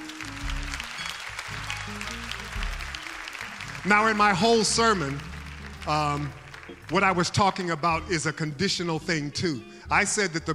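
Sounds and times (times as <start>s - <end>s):
audience clapping hands: 0.0s - 8.1s
low sustained musical chords: 0.0s - 9.3s
speech: 3.8s - 10.5s.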